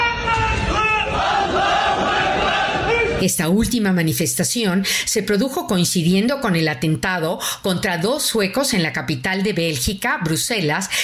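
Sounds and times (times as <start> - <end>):
large crowd chanting a war cry in unison: 0.0 - 3.2
speech: 3.2 - 11.0.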